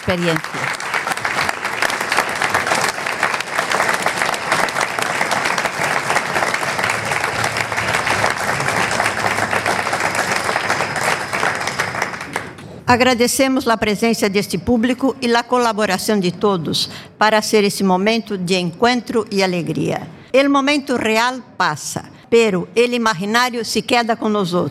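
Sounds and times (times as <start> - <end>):
audience applause: 0.0 - 12.6
speech: 0.1 - 0.8, 12.9 - 24.6.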